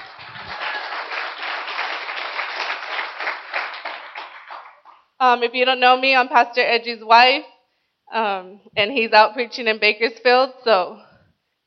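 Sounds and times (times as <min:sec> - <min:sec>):
audience clapping: 0:00.0 - 0:05.1
speech: 0:05.2 - 0:07.5, 0:08.1 - 0:11.1.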